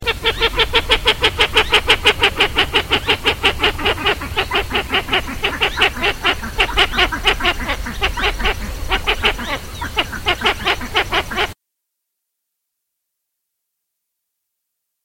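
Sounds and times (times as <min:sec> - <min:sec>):
pied-billed grebe Podilymbus podiceps rattling call: 0:00.0 - 0:11.6.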